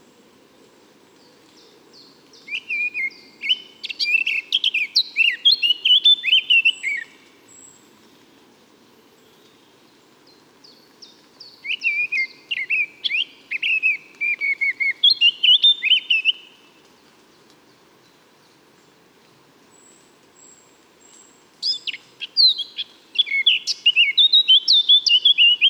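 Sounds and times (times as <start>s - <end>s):
Eurasian blackcap singing: 2.5s - 7.1s, 11.6s - 16.4s, 21.6s - 25.6s.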